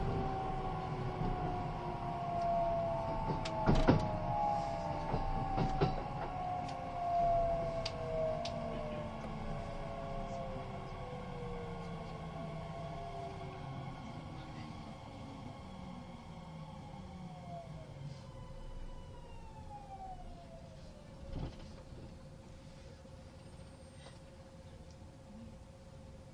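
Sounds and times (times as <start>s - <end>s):
Kintetsu 80000 series Hinotori train motor whine slowing down: 0.0s - 22.5s
low rumble: 0.0s - 23.4s
sharp clicks and knocks: 3.2s - 4.2s.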